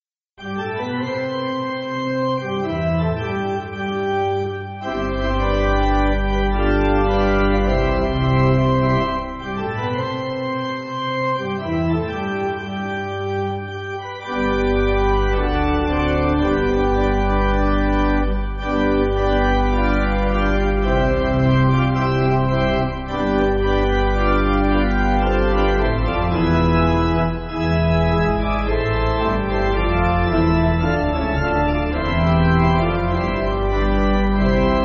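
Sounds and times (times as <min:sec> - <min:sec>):
pipe organ music backing: 0:00.4 - 0:34.8.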